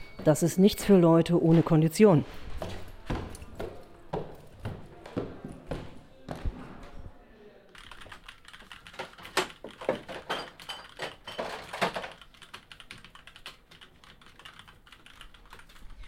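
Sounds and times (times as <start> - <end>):
people working in a hackerspace: 0.0 - 12.2
speech: 0.2 - 2.8.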